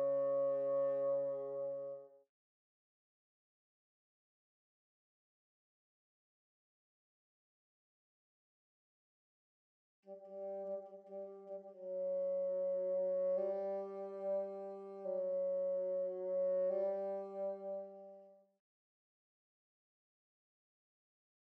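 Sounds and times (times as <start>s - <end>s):
bassoon: 0.0s - 2.2s, 10.1s - 18.4s.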